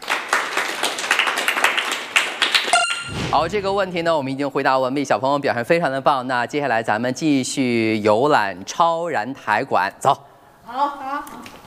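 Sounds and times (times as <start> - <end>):
applause for a correct answer: 0.0 - 2.9
speech: 3.3 - 11.6.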